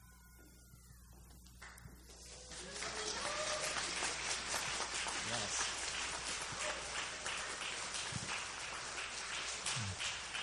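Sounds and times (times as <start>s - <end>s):
audience applause: 1.7s - 10.4s.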